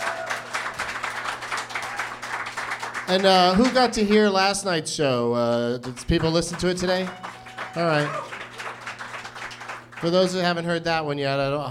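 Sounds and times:
audience applause: 0.0s - 3.9s, 5.9s - 10.4s
speech: 3.1s - 8.3s, 10.0s - 11.6s.

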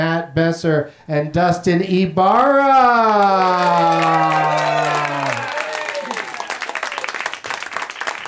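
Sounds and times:
speech: 0.3s - 4.4s
audience applauding and cheering with whoops: 2.8s - 8.2s.

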